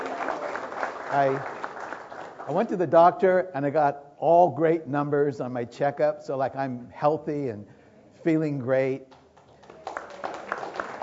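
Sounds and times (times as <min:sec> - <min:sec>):
audience applause: 0:00.0 - 0:02.7, 0:09.6 - 0:11.0
speech: 0:01.1 - 0:01.6, 0:02.4 - 0:09.2.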